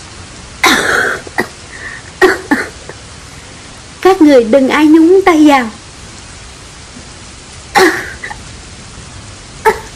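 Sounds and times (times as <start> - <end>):
steady hiss of noise: 0.0 - 9.9
woman coughing up blood in the rain: 0.6 - 1.6, 2.2 - 3.0, 7.7 - 8.4, 9.6 - 9.9
speech: 4.2 - 5.8.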